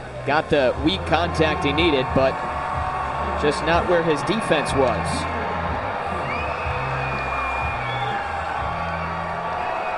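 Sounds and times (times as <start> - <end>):
baseball stadium crowd cheering: 0.0 - 9.9
speech: 0.2 - 2.6, 3.4 - 5.4.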